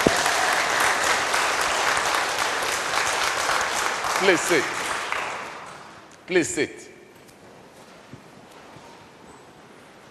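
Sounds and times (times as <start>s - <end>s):
audience applause: 0.0s - 5.9s
speech: 4.2s - 4.8s, 6.3s - 6.9s.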